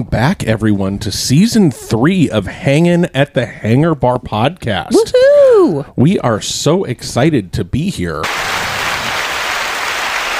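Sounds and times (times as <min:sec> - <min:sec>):
speech: 0:00.0 - 0:08.8
applause sound effect: 0:08.2 - 0:10.3.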